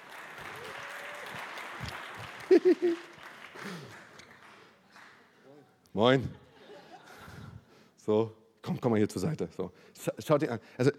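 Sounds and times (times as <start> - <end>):
audience applause: 0.0 - 5.2
laughter: 2.3 - 3.2, 6.3 - 7.5
speech: 2.6 - 4.0, 6.0 - 6.4, 8.0 - 10.9.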